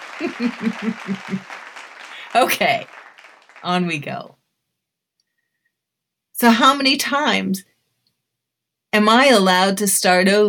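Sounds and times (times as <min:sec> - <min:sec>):
laughter: 0:00.0 - 0:02.9
applause sound effect from button: 0:00.0 - 0:04.2
speech: 0:00.2 - 0:01.6, 0:02.3 - 0:03.0, 0:03.6 - 0:04.4, 0:06.4 - 0:07.7, 0:08.9 - 0:10.4.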